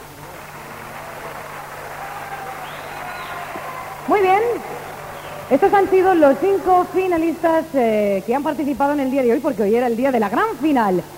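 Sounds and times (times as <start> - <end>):
audience applause: 0.0 - 7.7
speech: 4.1 - 4.9, 5.5 - 11.1.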